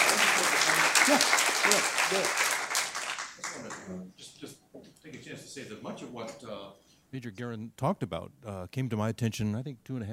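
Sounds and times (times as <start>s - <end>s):
audience applause: 0.0s - 3.9s
speech: 1.1s - 2.4s, 5.8s - 10.1s.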